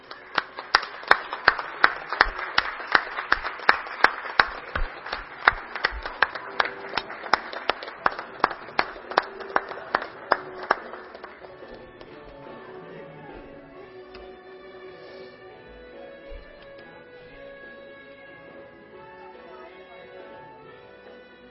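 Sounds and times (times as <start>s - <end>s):
applause from a group: 0.0s - 11.8s.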